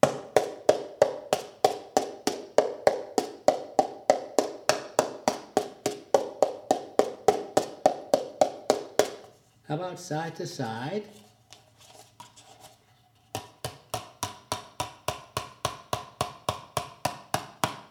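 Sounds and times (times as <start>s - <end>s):
paper cups clapped together mouth to mouth: 0.0s - 9.3s, 13.3s - 17.8s
speech: 9.7s - 11.2s.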